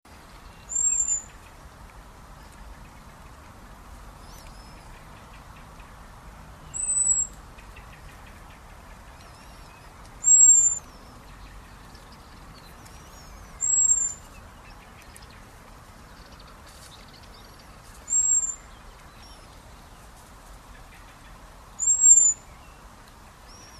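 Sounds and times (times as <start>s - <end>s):
background hiss: 0.1s - 23.7s
Common blackbird high thin whistle: 0.7s - 1.3s, 6.7s - 7.3s, 10.2s - 10.9s, 13.1s - 14.2s, 21.8s - 22.4s.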